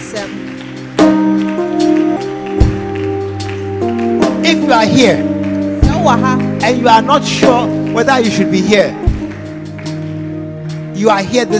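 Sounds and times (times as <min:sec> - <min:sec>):
audience clapping: 0:00.0 - 0:11.5
loud sustained keyboard chords: 0:00.0 - 0:11.5
speech: 0:00.2 - 0:00.5, 0:04.7 - 0:05.3, 0:06.0 - 0:09.0, 0:11.0 - 0:11.5.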